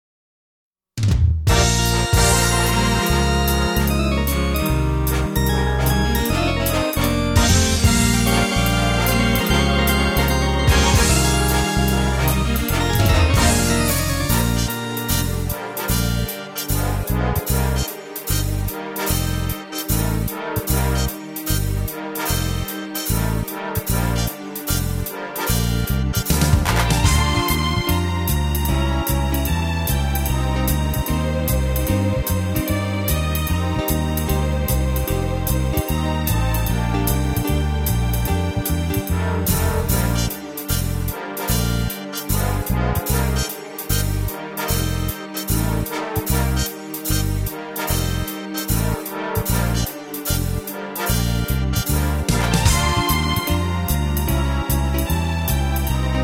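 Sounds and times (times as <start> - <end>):
brass music: 1.5 - 56.2.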